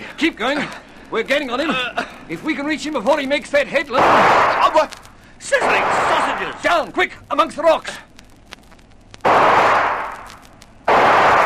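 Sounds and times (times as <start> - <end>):
speech: 0.2 - 8.1
gunshots: 4.0 - 5.0, 5.6 - 6.8, 9.2 - 11.4.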